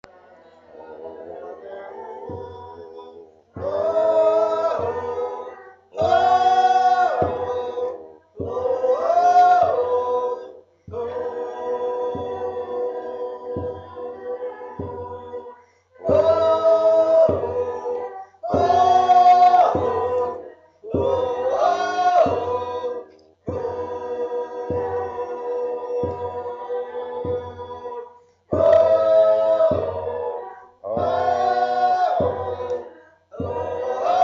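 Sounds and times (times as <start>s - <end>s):
tenor singing a festive song: 0.0s - 34.2s.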